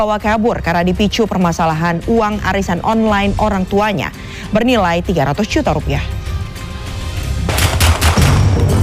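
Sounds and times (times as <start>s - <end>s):
speech: 0.0s - 6.3s
police warning gunshots fired into the air: 7.5s - 8.7s.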